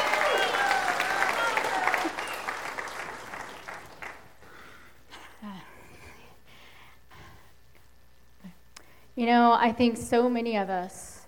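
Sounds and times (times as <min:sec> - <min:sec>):
audience applause: 0:00.0 - 0:04.8
speech: 0:09.2 - 0:11.1.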